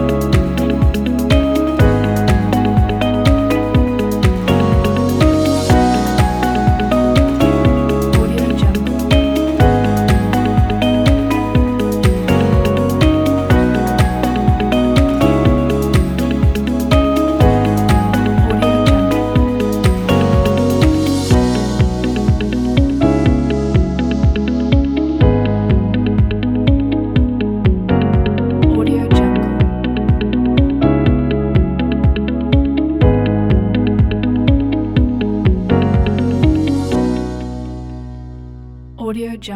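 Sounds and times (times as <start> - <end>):
upbeat motivational corporate music: 0.0 - 37.7.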